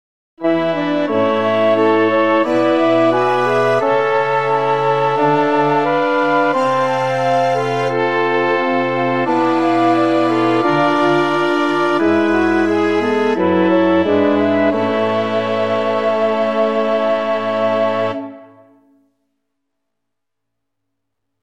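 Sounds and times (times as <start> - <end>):
orchestra: 0.4 - 18.9.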